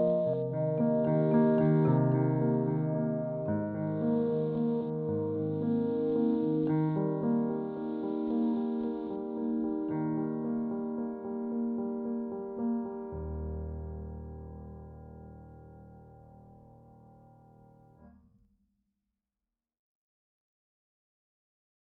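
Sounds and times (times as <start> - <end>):
sad soulful piano music in rock indie pop style: 0.0 - 18.1.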